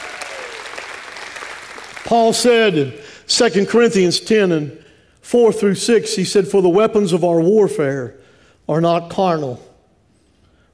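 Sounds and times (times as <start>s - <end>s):
audience applause and hand clapping: 0.0s - 2.7s
speech: 2.0s - 9.7s.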